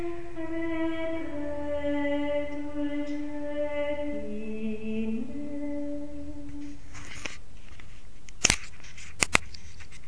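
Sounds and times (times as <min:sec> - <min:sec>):
contralto voices singing: 0:00.0 - 0:06.8.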